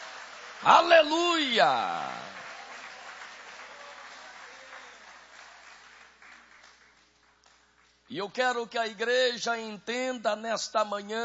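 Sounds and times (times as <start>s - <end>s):
audience applauding: 0.0s - 8.0s
speech: 0.6s - 2.2s, 8.1s - 11.2s.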